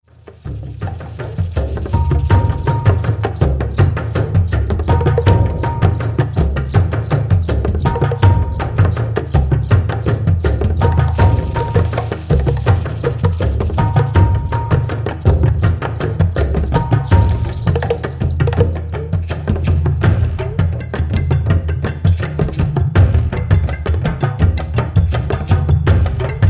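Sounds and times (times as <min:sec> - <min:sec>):
sunset drum ceremony: 0:00.3 - 0:26.4.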